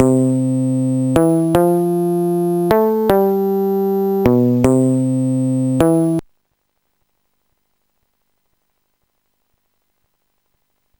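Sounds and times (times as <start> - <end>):
bass: 0.0 - 6.2.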